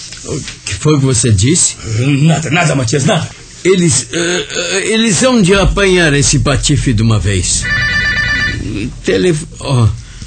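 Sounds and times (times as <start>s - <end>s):
speech: 0.2s - 8.0s, 8.7s - 10.0s
telephone bell ringing: 7.6s - 8.7s.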